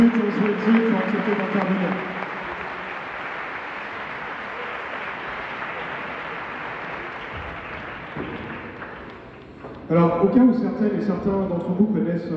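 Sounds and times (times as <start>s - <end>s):
speech: 0.0s - 2.2s, 9.9s - 12.3s
audience applause: 0.0s - 9.9s.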